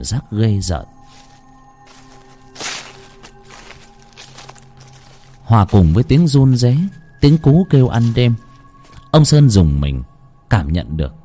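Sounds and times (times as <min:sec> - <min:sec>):
speech: 0:00.0 - 0:01.3, 0:05.5 - 0:08.4, 0:09.1 - 0:11.2
footsteps on dry leaves: 0:00.9 - 0:09.3.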